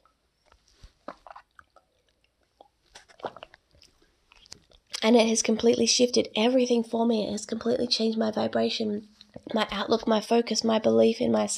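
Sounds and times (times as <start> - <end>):
person drinking a glass of water: 0.4 - 5.0
speech: 5.0 - 11.5.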